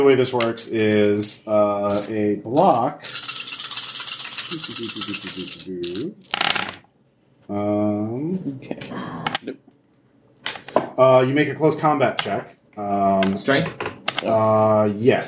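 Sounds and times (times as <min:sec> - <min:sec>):
speech: 0:00.0 - 0:03.2, 0:04.5 - 0:06.8, 0:07.5 - 0:09.7, 0:11.0 - 0:15.2
dice rolling: 0:01.2 - 0:06.9.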